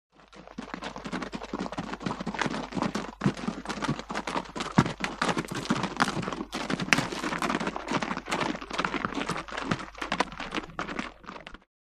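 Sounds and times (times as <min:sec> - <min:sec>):
3 horses walking up past: 0:00.2 - 0:11.7.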